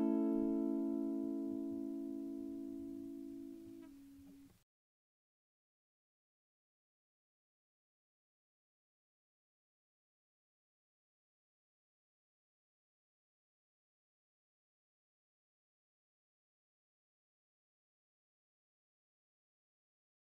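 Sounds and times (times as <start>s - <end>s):
acoustic music: 0.0s - 4.5s.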